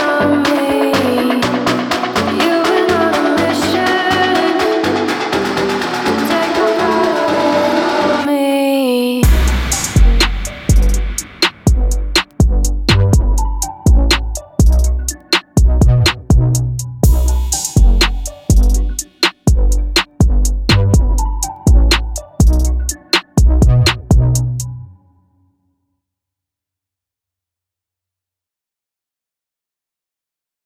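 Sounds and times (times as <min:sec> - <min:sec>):
electronic dance music: 0:00.0 - 0:08.3, 0:09.2 - 0:24.7.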